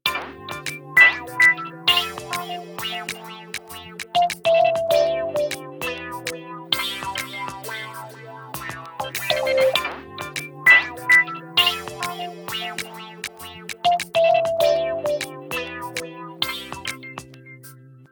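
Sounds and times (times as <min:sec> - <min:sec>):
ringtone: 0:00.1 - 0:17.8.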